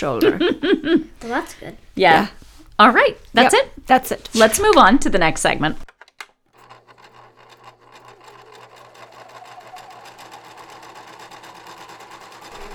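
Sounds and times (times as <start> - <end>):
speech: 0.0 - 5.9
laughter: 0.2 - 1.2
sewing machine running: 6.5 - 12.7.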